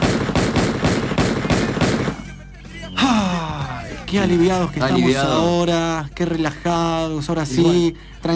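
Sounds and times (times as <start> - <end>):
rapid loud burst of repeated gunshots: 0.0 - 2.3
speech: 4.1 - 8.3.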